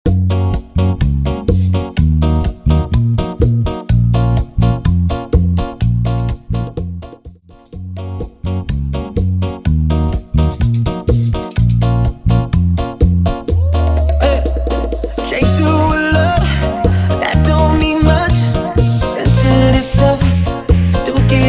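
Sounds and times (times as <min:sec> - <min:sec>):
bachata music: 0:00.1 - 0:21.4.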